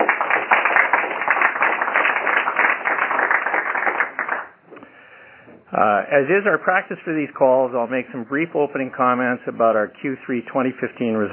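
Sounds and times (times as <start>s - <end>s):
audience applause: 0.0s - 4.6s
speech: 5.8s - 11.3s.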